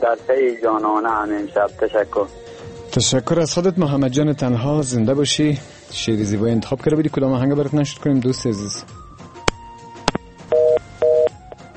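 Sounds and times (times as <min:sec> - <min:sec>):
speech: 0:00.0 - 0:09.0
telephone busy tone: 0:10.5 - 0:11.4.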